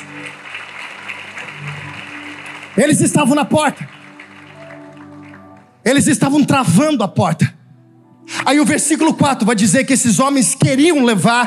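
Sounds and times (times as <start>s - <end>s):
audience applauding: 0.0s - 6.3s
speech: 2.8s - 4.0s, 5.9s - 7.5s, 8.5s - 11.4s.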